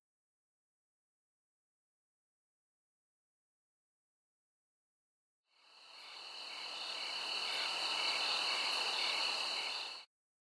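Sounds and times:
crickets chirping at Christ the Redeemer: 5.6 - 10.0.

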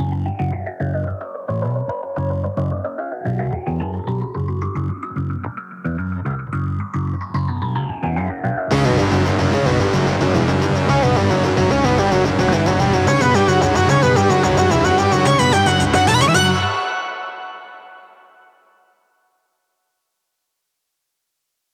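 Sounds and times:
basses at 110 BPM: 0.0 - 16.8.

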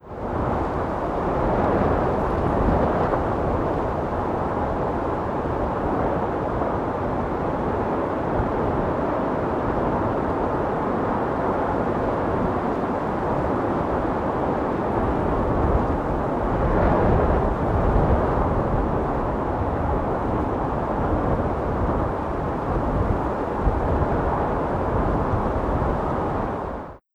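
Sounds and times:
wind: 0.0 - 27.0.

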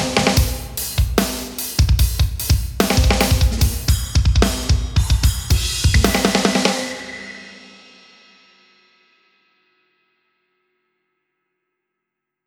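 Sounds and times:
drums: 0.0 - 9.6.

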